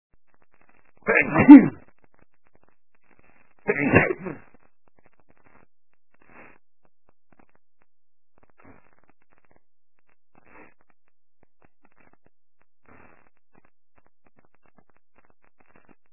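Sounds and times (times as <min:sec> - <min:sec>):
man sneezing: 0:01.1 - 0:01.8, 0:03.7 - 0:04.4.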